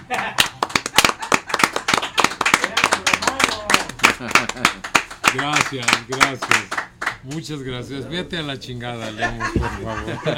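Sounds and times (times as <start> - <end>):
laughter: 0.0 - 4.9, 9.0 - 10.3
applause for the guests: 0.1 - 7.3
speech: 4.2 - 10.3.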